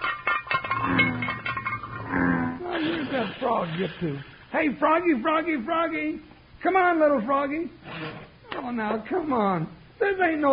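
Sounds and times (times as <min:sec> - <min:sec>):
bones clinking in a frying pan: 0:00.0 - 0:02.1
speech: 0:03.4 - 0:10.5.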